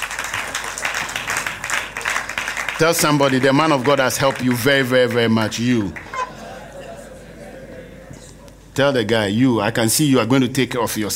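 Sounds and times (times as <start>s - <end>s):
audience clapping: 0.0s - 6.4s
speech: 2.8s - 6.1s, 8.8s - 11.1s
laughter: 5.6s - 8.4s.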